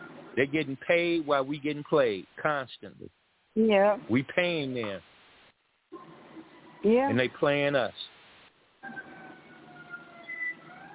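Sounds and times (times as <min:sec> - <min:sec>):
speech: 0:00.4 - 0:05.1, 0:06.8 - 0:08.0
sirens: 0:08.8 - 0:10.9.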